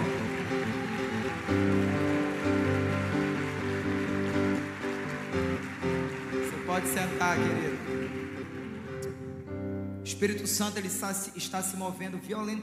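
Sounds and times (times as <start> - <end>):
applause: 0.0 - 9.5
speech: 6.8 - 7.7, 10.2 - 12.6.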